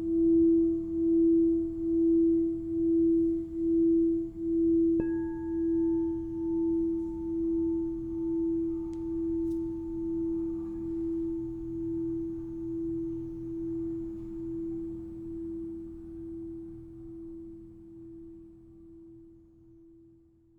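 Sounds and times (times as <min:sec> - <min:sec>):
crystal singing bowls ringing: 0:00.2 - 0:16.7.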